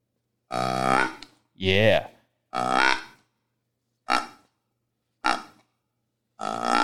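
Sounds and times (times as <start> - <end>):
deer grunt call blown through a bourbon barrel grunt tube: 0.5 - 3.1, 6.4 - 6.8
speech: 1.6 - 3.0.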